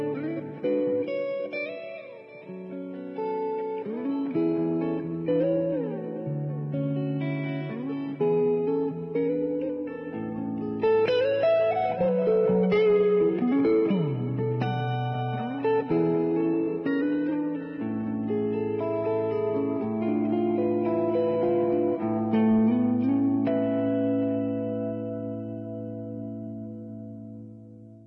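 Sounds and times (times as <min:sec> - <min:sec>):
electric guitar: 0:00.0 - 0:28.0.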